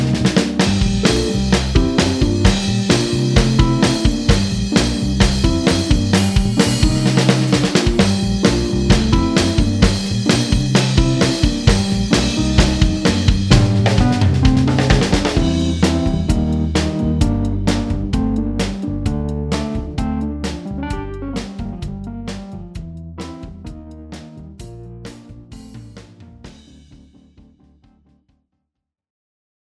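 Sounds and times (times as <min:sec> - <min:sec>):
backing guitar: 0:00.1 - 0:22.3.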